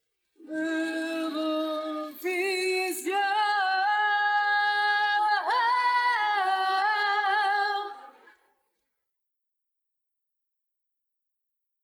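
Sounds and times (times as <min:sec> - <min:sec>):
voice: 0:00.4 - 0:08.3.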